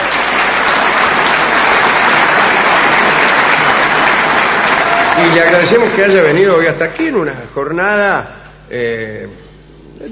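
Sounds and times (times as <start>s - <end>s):
audience applause: 0.0s - 6.7s
speech: 5.2s - 9.4s.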